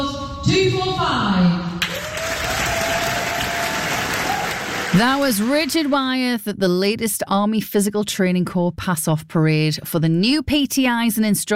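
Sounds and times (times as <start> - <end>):
speech: 0.5 - 1.7, 4.9 - 11.5
audience applause at Army Physical Training Corps pass-off parade, Fox Lines, Aldershot Garrison: 1.8 - 6.0.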